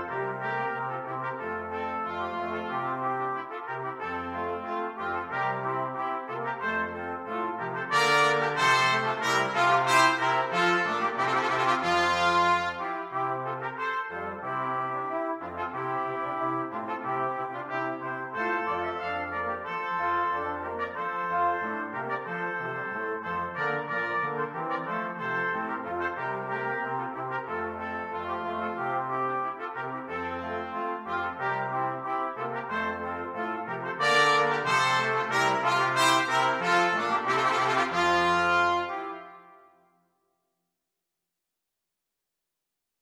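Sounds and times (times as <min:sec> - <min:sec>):
brass quartet playing: 0:00.0 - 0:39.6.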